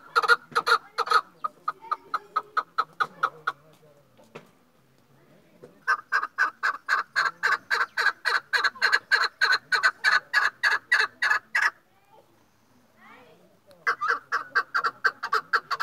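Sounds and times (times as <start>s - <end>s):
partridge chick calling: 0.0s - 3.6s, 5.8s - 11.8s, 13.8s - 15.8s.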